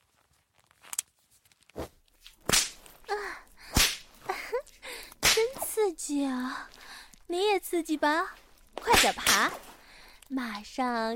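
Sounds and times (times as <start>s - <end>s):
leather belt lashing bare buttocks: 0.5s - 5.6s
speech: 7.3s - 9.7s, 10.3s - 11.1s.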